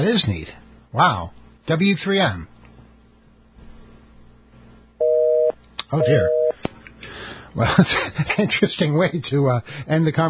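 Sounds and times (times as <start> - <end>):
speech: 0.0 - 2.5, 5.9 - 6.4, 7.6 - 10.2
telephone end-of-call dual-pitched electronic tone: 5.0 - 6.6.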